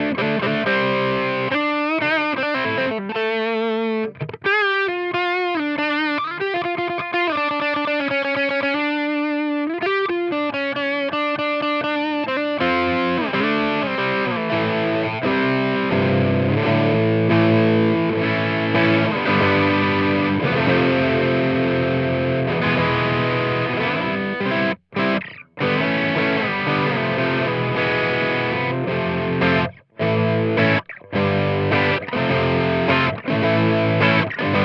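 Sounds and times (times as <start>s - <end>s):
Amplitube X-Drive Tubescreamer overdrive: 0.0s - 34.6s.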